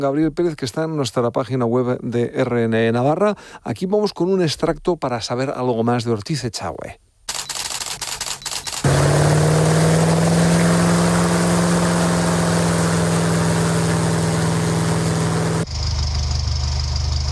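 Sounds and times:
speech: 0.0 - 7.1
camera shutter clicks: 7.3 - 8.9
airplane engine drone: 8.9 - 17.3.

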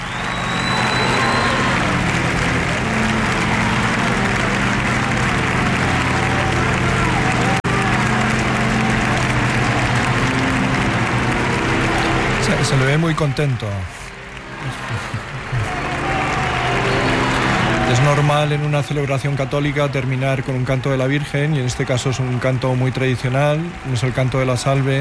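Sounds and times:
large outdoor crowd applauding at Cibeles in Madrid: 0.0 - 24.9
speech: 12.9 - 16.0, 17.9 - 24.9
laughter: 14.4 - 17.8.

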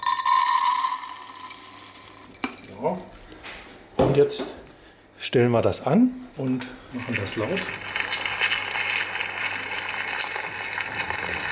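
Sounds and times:
grain poured into a container: 0.0 - 2.3, 7.0 - 11.5
speech: 2.8 - 3.2, 4.2 - 4.6, 5.2 - 7.9.

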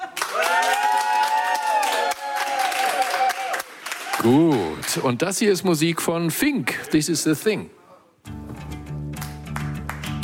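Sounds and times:
closing applause from live audience: 0.0 - 5.2, 9.2 - 10.2
speech: 4.2 - 8.4.

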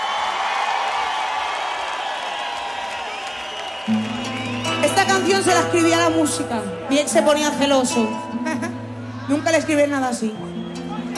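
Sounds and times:
festival audience cheering and applauding loudly: 0.0 - 6.4
speech: 3.9 - 10.5.

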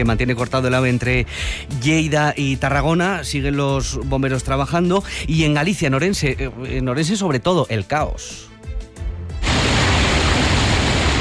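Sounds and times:
speech: 0.0 - 8.5
thunderstorm noise: 9.4 - 11.2.

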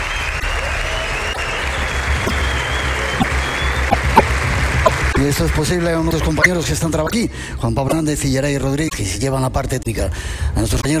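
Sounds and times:
theatre audience applauding: 0.0 - 6.4
speech: 5.2 - 10.9.

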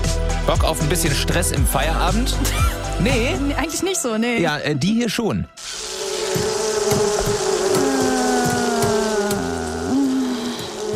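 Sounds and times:
speech: 0.5 - 5.7
wasps buzzing: 5.6 - 10.9.

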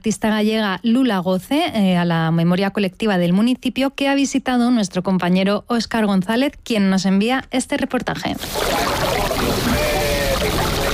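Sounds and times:
speech: 0.0 - 9.9
sea water washing against a harbour breakwater in Bayona: 8.4 - 10.9.

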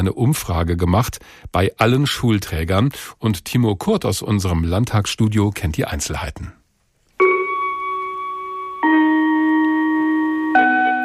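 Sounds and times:
speech: 0.0 - 6.6
school bell gong ending lessons: 7.2 - 11.0.

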